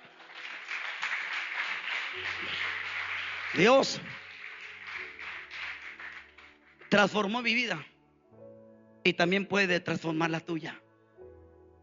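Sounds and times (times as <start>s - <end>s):
audience clapping hands: 0.0s - 7.9s
speech: 3.5s - 4.2s, 6.9s - 7.9s, 9.0s - 10.8s.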